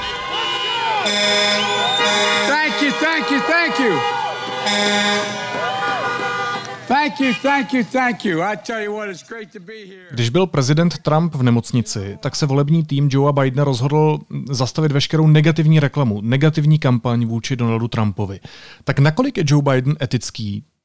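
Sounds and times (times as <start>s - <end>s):
car horns honking as applause: 0.0s - 8.8s
speech: 1.0s - 1.4s, 7.2s - 20.7s.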